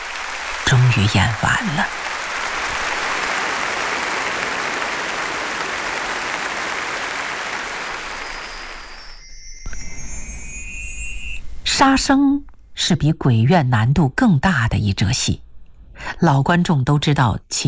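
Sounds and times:
thunderous applause in a theatre: 0.0s - 8.8s
speech: 0.7s - 2.1s, 11.8s - 15.4s, 16.0s - 17.6s.

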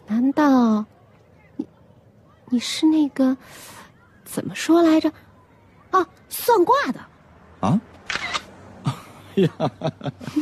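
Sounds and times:
speech: 0.3s - 0.9s, 2.5s - 5.2s, 5.9s - 7.9s, 9.4s - 10.3s
camera shutter taking a photo: 8.0s - 8.5s
laughter: 8.8s - 10.3s.

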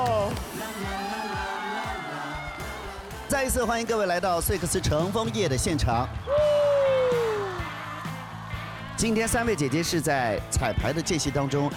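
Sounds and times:
crowd cheering and whooping: 0.5s - 2.9s, 6.2s - 10.1s
speech: 3.3s - 6.4s, 9.0s - 11.7s.

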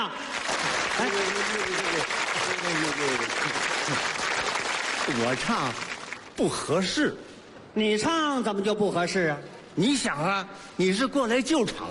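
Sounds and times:
audience applause: 0.0s - 6.4s
speech: 1.0s - 11.8s.

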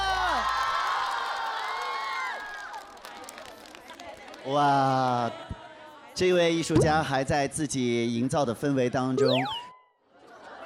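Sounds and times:
audience cheering: 0.0s - 2.9s
speech: 4.5s - 5.5s, 6.2s - 9.6s.

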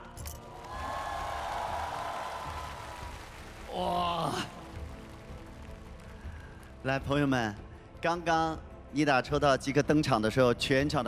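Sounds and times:
audience applause: 0.5s - 6.8s
speech: 3.8s - 4.1s, 6.8s - 11.0s.

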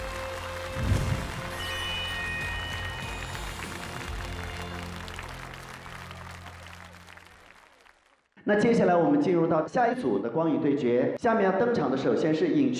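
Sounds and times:
crowd applause: 0.0s - 8.4s
speech: 8.5s - 12.7s.

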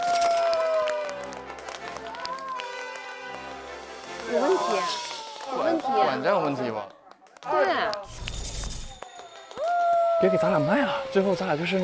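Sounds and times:
audience applause: 0.0s - 8.1s, 8.9s - 11.8s
speech: 4.3s - 8.0s, 10.2s - 11.8s.

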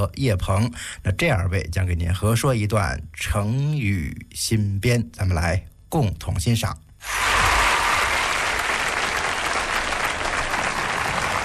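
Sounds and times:
speech: 0.0s - 7.2s
audience applause: 7.0s - 11.4s.

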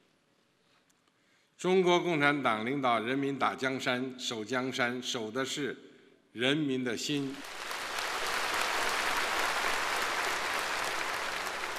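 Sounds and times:
speech: 1.6s - 7.6s
thunderous applause from a large audience: 7.3s - 11.7s.

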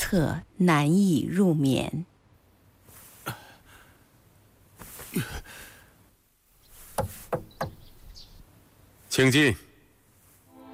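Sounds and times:
speech: 0.1s - 2.1s, 5.2s - 5.6s, 9.2s - 9.6s
knocking on a door: 7.0s - 7.8s.

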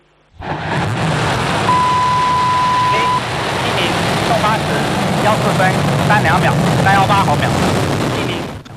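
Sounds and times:
Long March 7 Y11 carrier rocket ignition and liftoff roar: 0.0s - 8.7s
voices: 1.7s - 7.6s.

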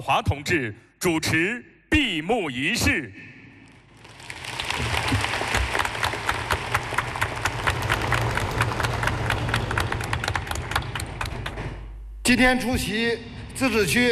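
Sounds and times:
speech: 0.0s - 3.3s, 12.3s - 14.1s
large crowd applauding warmly: 3.7s - 11.9s.

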